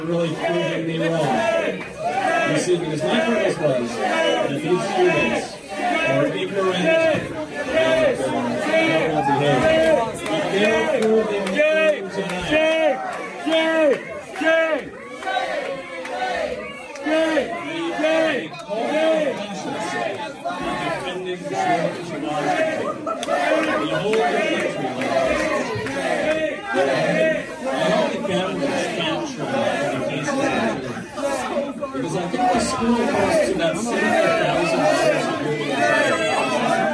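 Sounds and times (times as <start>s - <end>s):
speech: 0.0s - 14.5s, 31.9s - 36.9s
protesters shouting and shrieking: 0.0s - 36.9s
laughter: 18.8s - 36.9s.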